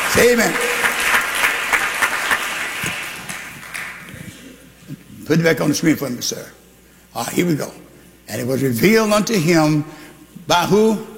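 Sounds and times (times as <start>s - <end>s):
audience clapping hands: 0.0s - 4.3s
speech: 0.1s - 0.8s, 5.3s - 11.1s.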